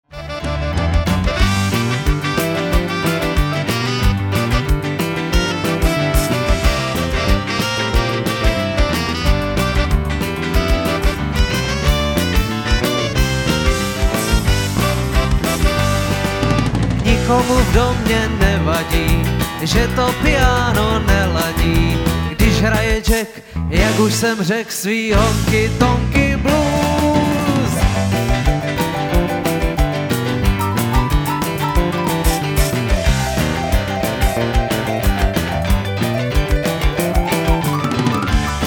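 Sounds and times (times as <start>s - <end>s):
honky-tonk blues: 0.1s - 24.2s, 25.2s - 38.6s.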